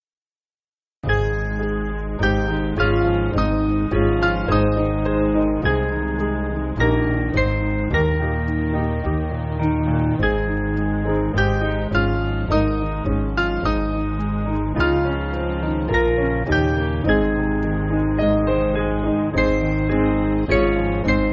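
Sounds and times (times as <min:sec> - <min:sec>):
piano backing music: 0:01.0 - 0:21.3.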